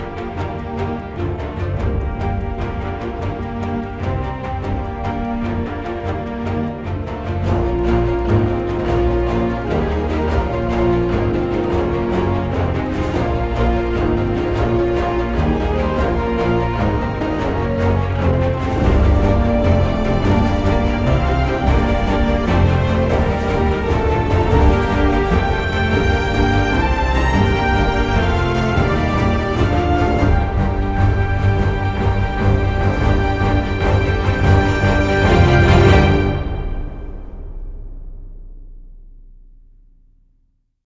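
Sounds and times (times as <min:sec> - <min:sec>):
strings: 0:00.0 - 0:39.8.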